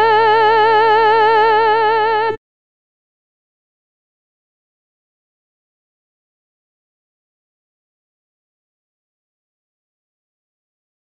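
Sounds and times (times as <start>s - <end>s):
soprano voices singing a hymn with guide vocals: 0.0s - 2.4s.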